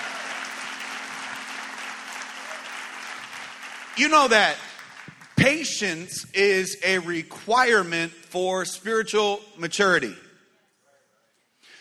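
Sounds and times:
audience applause: 0.0 - 5.6
speech: 4.0 - 4.7, 5.4 - 10.2.

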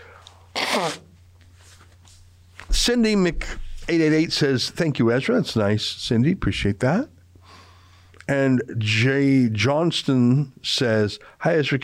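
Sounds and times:
low steady hum: 0.0 - 11.8
nose blowing: 0.5 - 1.2
speech: 0.8 - 1.1, 2.8 - 7.2, 8.3 - 11.8.

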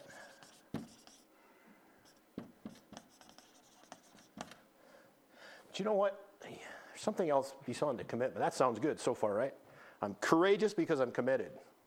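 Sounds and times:
word being written on a board: 0.0 - 1.3, 2.0 - 4.6
speech: 5.8 - 11.7.

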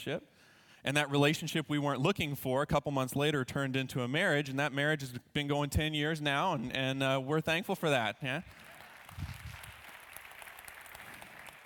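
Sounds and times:
speech: 0.0 - 9.3
audience applause: 8.4 - 11.6.

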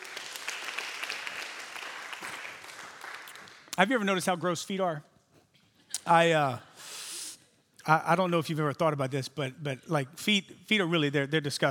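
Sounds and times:
audience clapping hands: 0.0 - 4.0
speech: 3.8 - 5.1, 6.1 - 6.7, 7.9 - 11.6.

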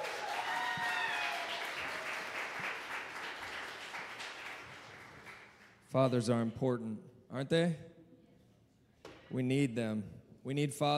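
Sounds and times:
audience applause for fathers: 0.0 - 5.7
speech: 5.9 - 7.9, 9.3 - 10.9.

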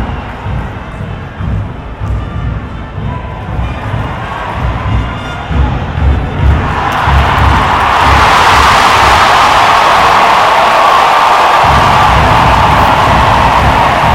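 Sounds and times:
soccer crowd cheering, Portland Thorns vs Houston Dash: 0.0 - 14.1.

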